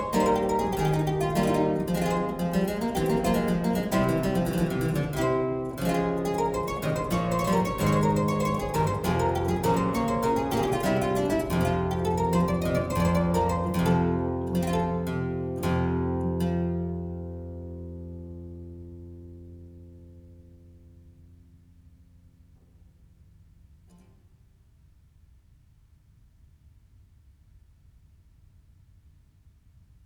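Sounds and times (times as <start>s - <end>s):
galliard on harpsichord with lute stop: 0.0s - 17.3s.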